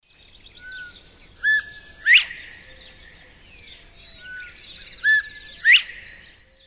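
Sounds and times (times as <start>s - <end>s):
Northern bobwhite whistled call: 0.6s - 3.0s, 4.2s - 6.4s.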